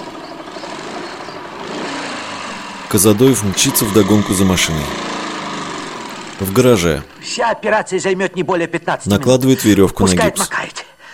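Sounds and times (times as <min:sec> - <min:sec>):
helicopter flying overhead over a forest: 0:00.0 - 0:08.0
speech: 0:02.9 - 0:05.2, 0:06.4 - 0:10.8.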